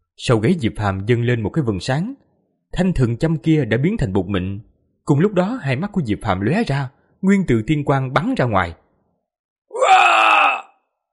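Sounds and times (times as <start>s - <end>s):
speech: 0.2s - 8.8s
agonized scream of pain: 9.7s - 10.8s.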